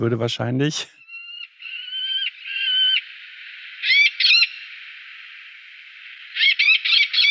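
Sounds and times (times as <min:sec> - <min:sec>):
Eleonora's falcon call: 0:01.0 - 0:03.1, 0:03.7 - 0:04.7, 0:06.3 - 0:07.2.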